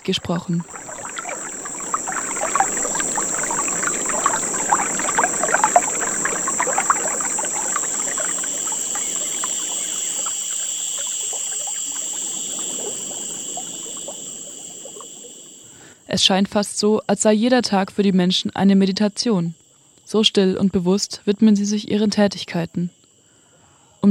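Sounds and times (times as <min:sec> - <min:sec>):
speech: 0:00.0 - 0:00.8, 0:16.2 - 0:23.0
rushing river: 0:00.0 - 0:15.6
crickets chirping: 0:00.0 - 0:24.1.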